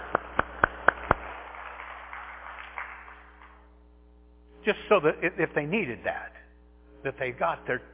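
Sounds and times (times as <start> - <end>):
audience clapping: 0.0 - 3.8
speech: 4.7 - 6.4, 7.0 - 7.9.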